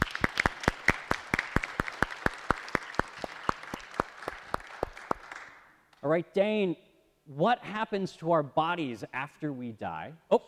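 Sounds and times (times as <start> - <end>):
audience applause: 0.0 - 5.6
speech: 6.0 - 10.4.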